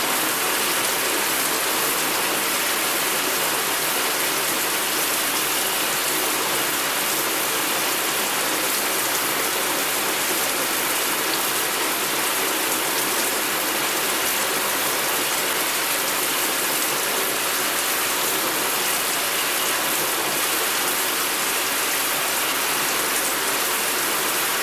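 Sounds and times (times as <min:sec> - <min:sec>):
water running in a shower: 0:00.0 - 0:24.6.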